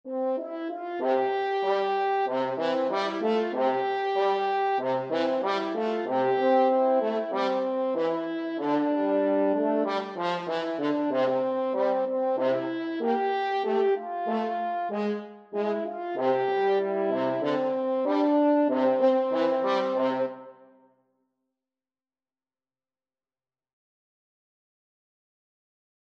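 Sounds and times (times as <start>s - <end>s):
french horn duet: 0.1s - 20.6s.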